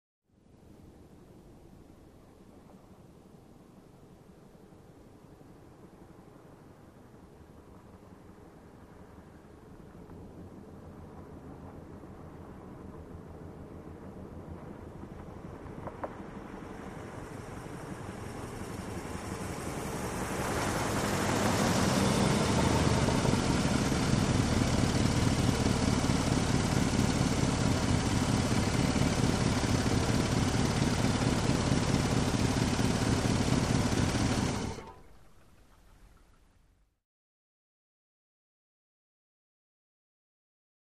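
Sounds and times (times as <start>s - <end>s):
car engine slow idling and shutting off: 7.4s - 36.9s.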